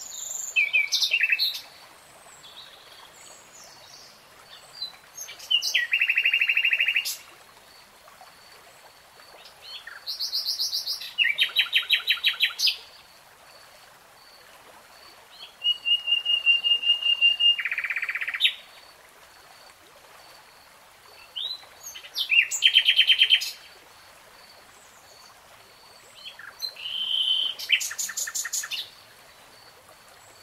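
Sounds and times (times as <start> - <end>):
nightingale song: 0.0 - 1.7, 2.4 - 7.3, 9.4 - 12.9, 15.3 - 18.7, 21.2 - 23.7, 26.2 - 29.0.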